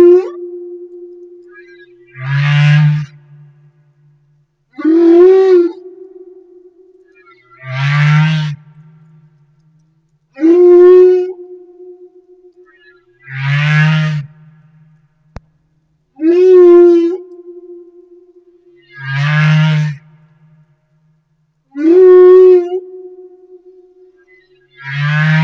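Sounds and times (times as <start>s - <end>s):
humpback whale song: 0.0s - 3.5s, 4.7s - 7.9s, 10.4s - 13.6s, 16.2s - 20.0s, 21.7s - 25.4s.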